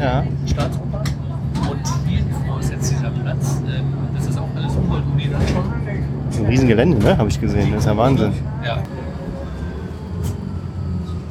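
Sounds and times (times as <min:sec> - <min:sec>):
speech: 0:00.0 - 0:01.0, 0:04.8 - 0:09.1
city bus engine drone in Berlin: 0:00.0 - 0:11.3
road rumble inside a moving city bus in Berlin: 0:00.0 - 0:11.3.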